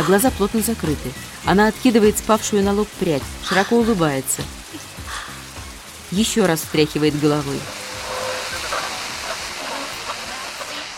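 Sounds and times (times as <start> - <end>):
speech: 0.0 - 4.9, 6.1 - 7.8
steady rain pouring: 0.0 - 10.9.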